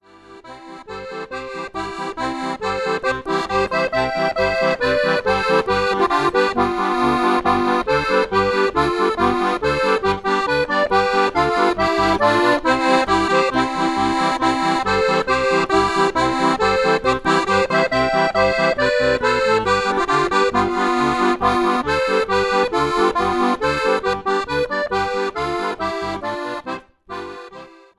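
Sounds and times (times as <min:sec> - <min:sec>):
Schwyzerörgeli playing polka: 0:00.0 - 0:27.9.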